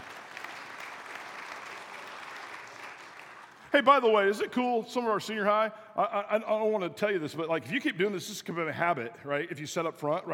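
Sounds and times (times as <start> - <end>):
audience applause: 0.0 - 3.7
speech: 3.7 - 10.3.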